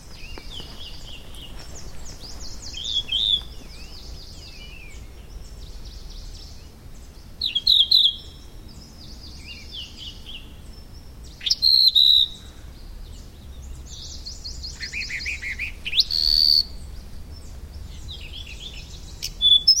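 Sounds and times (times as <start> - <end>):
Firethroat high twittering song: 0.0 - 19.7.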